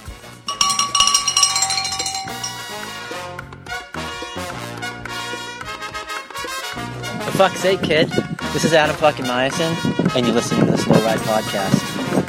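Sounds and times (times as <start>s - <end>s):
cowbell ringing: 0.5s - 2.8s
speech: 7.4s - 12.2s.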